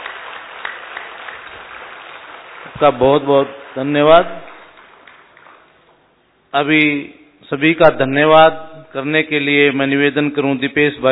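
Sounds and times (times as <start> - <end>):
audience applause for a doctor who has just spoken: 0.0 - 5.9
speech: 2.7 - 4.5, 6.5 - 11.1.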